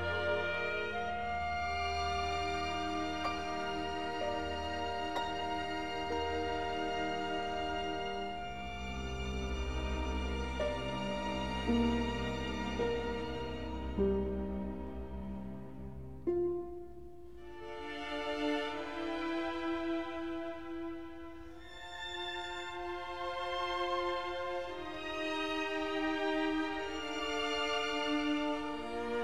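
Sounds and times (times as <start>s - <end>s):
clarinet: 0.0s - 29.2s
harp: 0.0s - 29.2s
piano: 0.0s - 29.2s
string orchestra: 0.0s - 29.2s.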